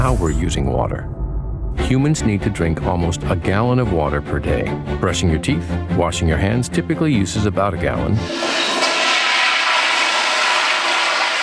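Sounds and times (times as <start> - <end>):
speech: 0.1 - 1.2, 1.8 - 8.7
toilet flushing: 8.1 - 11.4.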